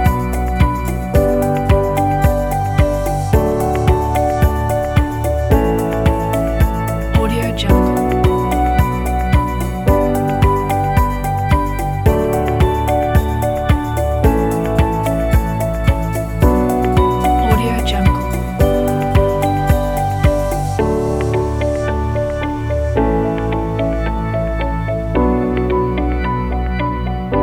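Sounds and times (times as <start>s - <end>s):
corporate ambient music: 0.0s - 27.4s.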